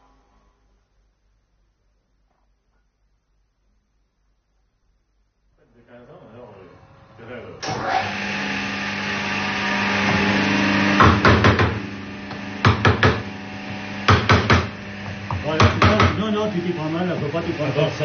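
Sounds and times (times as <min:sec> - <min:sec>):
steady low hum: 0:04.0 - 0:18.0
hammer striking a metal tool: 0:14.1 - 0:14.7, 0:15.3 - 0:16.2.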